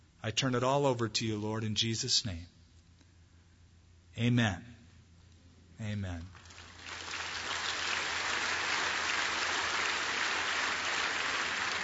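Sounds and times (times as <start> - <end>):
speech: 0.2 - 2.6, 4.2 - 4.8, 5.8 - 6.4
audience clapping: 6.3 - 11.8.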